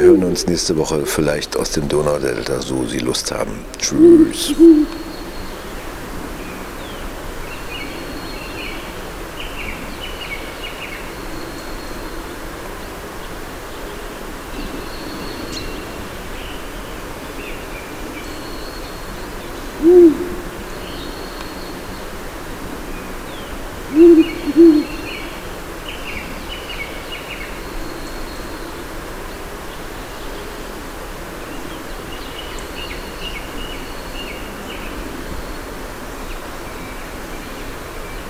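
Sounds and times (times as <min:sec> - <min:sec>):
owl hooting: 0:00.0 - 0:00.5, 0:03.8 - 0:05.5, 0:18.0 - 0:22.0, 0:23.8 - 0:25.4
Carpathian forest sounds: 0:00.0 - 0:38.2
speech: 0:00.1 - 0:05.1.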